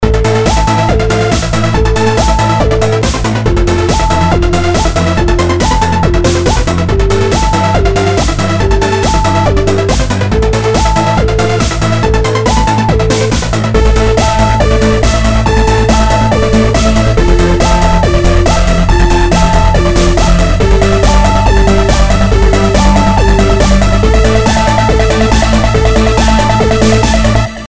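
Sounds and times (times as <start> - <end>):
techno music: 0.0 - 27.6.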